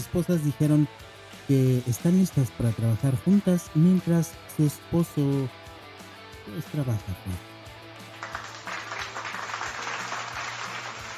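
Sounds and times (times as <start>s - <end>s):
speech: 0.0s - 5.6s, 6.5s - 7.5s
applause: 8.0s - 11.1s.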